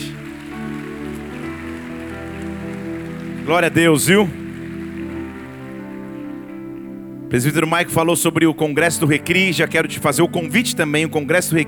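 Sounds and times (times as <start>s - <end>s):
audience applauding: 0.0s - 7.0s
speech: 3.5s - 4.4s, 7.3s - 11.6s.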